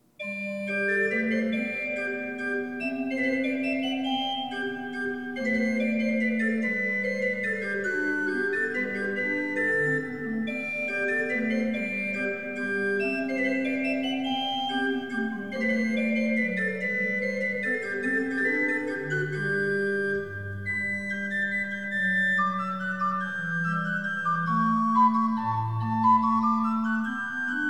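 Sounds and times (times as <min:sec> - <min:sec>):
minuet: 0:00.0 - 0:27.6.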